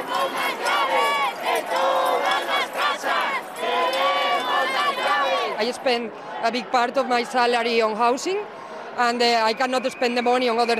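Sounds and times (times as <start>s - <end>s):
protest crowd in Spain chanting over the housing crisis: 0.0s - 8.0s
speech: 5.6s - 10.7s.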